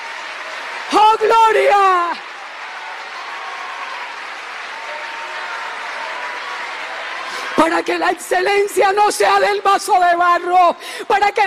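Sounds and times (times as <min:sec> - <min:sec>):
audience applause: 0:00.0 - 0:08.7
speech: 0:00.9 - 0:02.2, 0:07.6 - 0:11.4.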